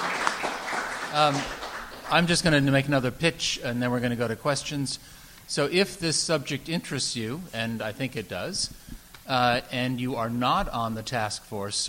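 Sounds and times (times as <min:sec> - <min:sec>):
audience applause: 0:00.0 - 0:02.6
speech: 0:01.1 - 0:11.8.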